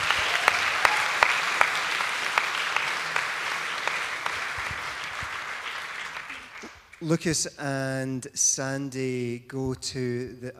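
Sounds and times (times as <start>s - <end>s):
audience cheering: 0.0s - 6.8s
speech: 7.0s - 10.5s.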